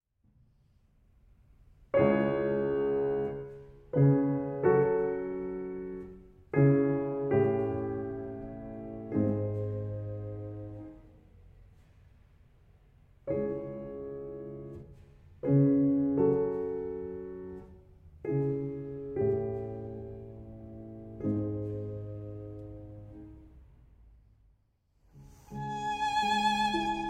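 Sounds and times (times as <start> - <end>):
nocturne in C-sharp minor: 1.9 - 11.1, 13.3 - 23.7, 25.1 - 27.0.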